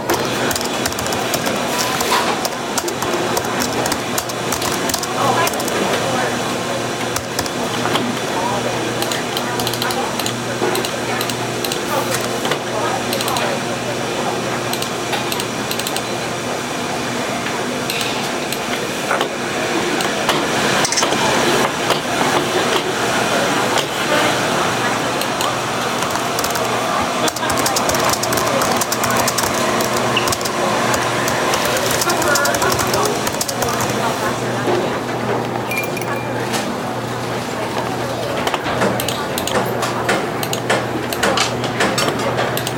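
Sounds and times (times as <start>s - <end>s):
murmur of chatter in a cafe: 0.0s - 42.7s.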